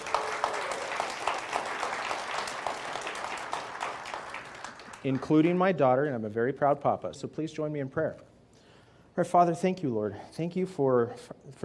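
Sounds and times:
audience applause: 0:00.0 - 0:05.4
speech: 0:05.0 - 0:08.3, 0:09.2 - 0:11.6.

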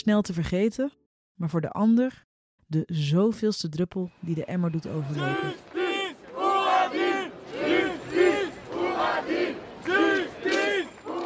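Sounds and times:
speech: 0:00.0 - 0:05.7
protesting crowd chanting a slogan in the street: 0:04.1 - 0:11.2.

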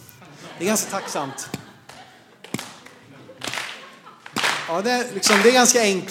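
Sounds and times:
laughter: 0:00.0 - 0:06.0
speech: 0:00.6 - 0:01.6, 0:04.7 - 0:06.0
hand clapping: 0:01.5 - 0:05.8.

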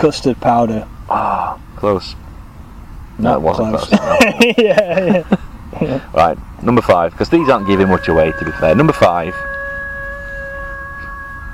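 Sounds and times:
speech: 0:00.0 - 0:02.2, 0:03.2 - 0:09.5
laughter: 0:03.9 - 0:06.1
eerie werewolf-like howling: 0:07.2 - 0:11.5.

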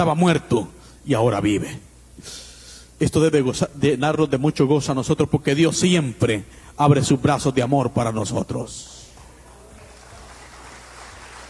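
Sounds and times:
speech: 0:00.0 - 0:09.0
audience applauding: 0:09.2 - 0:11.4.

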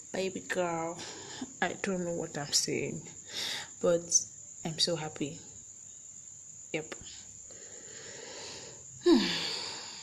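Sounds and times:
speech: 0:00.1 - 0:05.5, 0:06.7 - 0:07.2
person inhaling deeply: 0:07.5 - 0:10.0.

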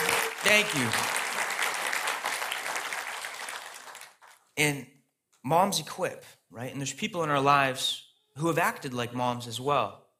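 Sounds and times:
audience clapping: 0:00.0 - 0:04.6
speech: 0:00.4 - 0:01.2, 0:04.6 - 0:10.0.

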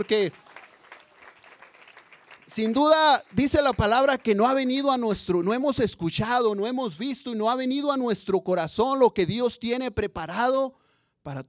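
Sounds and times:
speech: 0:00.0 - 0:00.4, 0:02.6 - 0:11.4
audience applauding and cheering: 0:00.0 - 0:04.9.

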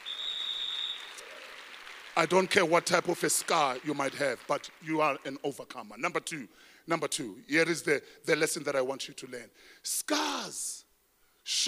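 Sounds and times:
audience applause: 0:00.0 - 0:05.3
speech: 0:02.2 - 0:10.8, 0:11.4 - 0:11.6.

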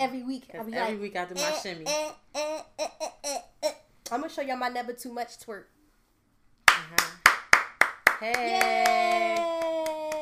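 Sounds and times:
speech: 0:00.0 - 0:05.8, 0:08.2 - 0:09.6
applause, hand clapping: 0:06.6 - 0:10.2.

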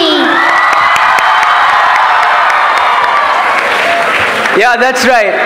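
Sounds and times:
high shouts and whoops: 0:00.2 - 0:04.2
large crowd applauding: 0:00.3 - 0:05.4
speech: 0:04.7 - 0:05.4.

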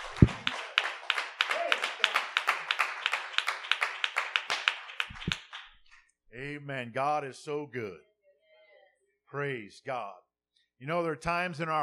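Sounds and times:
audience clapping hands: 0:00.0 - 0:06.1
speech: 0:00.2 - 0:00.4, 0:06.7 - 0:08.1, 0:09.3 - 0:10.2, 0:10.8 - 0:11.8.

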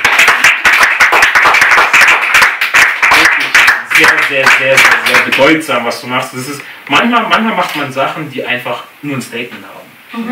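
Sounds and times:
applause: 0:00.0 - 0:05.6
speech: 0:04.0 - 0:10.3.

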